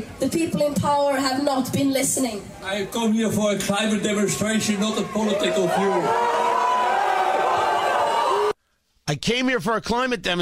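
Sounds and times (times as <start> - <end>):
speech: 0.0 - 6.5, 9.1 - 10.3
crowd of children booing a man on stage: 4.0 - 8.6.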